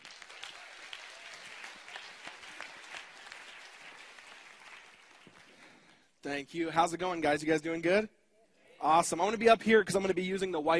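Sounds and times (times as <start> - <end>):
audience applause welcoming a speaker: 0.0 - 5.9
speech: 6.2 - 8.2, 8.8 - 10.7.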